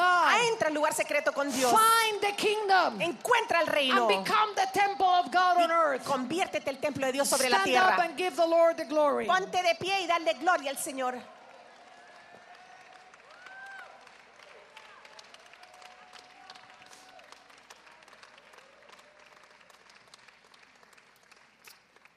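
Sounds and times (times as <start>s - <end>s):
speech: 0.6s - 11.4s
weak audience clapping: 10.5s - 22.1s.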